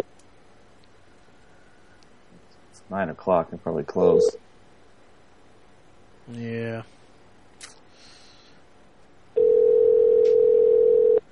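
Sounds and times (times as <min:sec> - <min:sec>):
speech: 0:02.9 - 0:04.4, 0:06.3 - 0:06.9
telephone call ring tone: 0:09.4 - 0:11.2.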